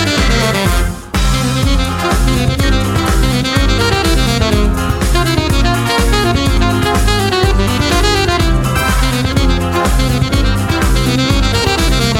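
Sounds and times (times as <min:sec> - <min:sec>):
saxophone melody: 0:00.0 - 0:12.1.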